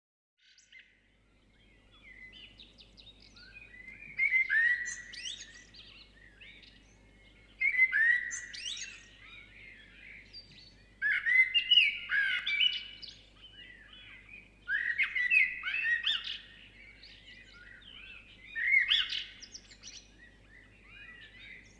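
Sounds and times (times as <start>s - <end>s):
birds twittering and chirping at sunrise in the South Seas: 0.4s - 21.7s.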